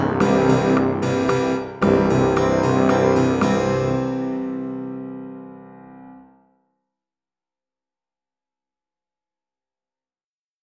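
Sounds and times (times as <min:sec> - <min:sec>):
tenor trombone playing across its range: 0:00.0 - 0:05.0.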